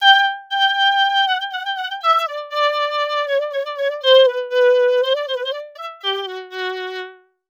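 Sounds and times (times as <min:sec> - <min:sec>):
violin: 0:00.0 - 0:07.4.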